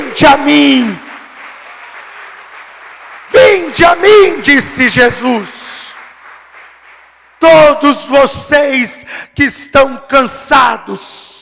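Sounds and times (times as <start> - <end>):
audience applause: 0.0 - 8.2
speech: 0.2 - 1.0, 3.7 - 5.6, 7.4 - 11.4.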